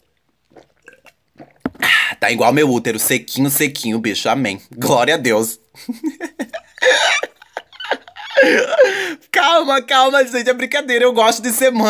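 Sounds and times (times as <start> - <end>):
person drinking a sip of water: 0.0 - 2.2
speech: 2.2 - 6.2, 8.4 - 11.8
laughter: 5.8 - 8.9.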